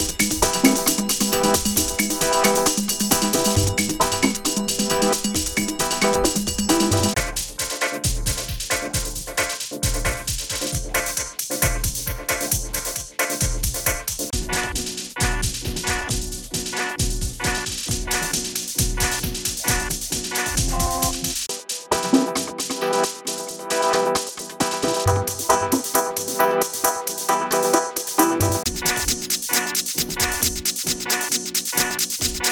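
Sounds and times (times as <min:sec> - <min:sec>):
dubstep music: 0:00.0 - 0:32.5.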